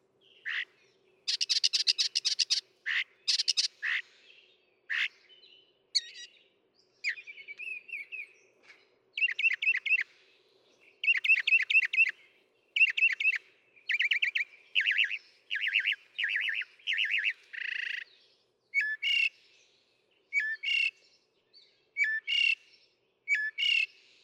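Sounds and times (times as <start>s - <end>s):
Northern mockingbird singing: 1.3s - 4.0s, 6.0s - 6.4s, 9.2s - 10.0s, 11.0s - 12.1s, 12.8s - 18.1s, 18.7s - 19.4s, 20.3s - 21.0s, 22.0s - 22.6s, 23.3s - 23.9s.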